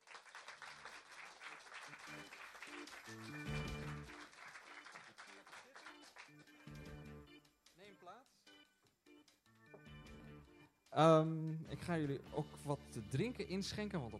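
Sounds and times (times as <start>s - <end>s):
audience applause: 0.0s - 6.6s
speech: 11.0s - 14.1s.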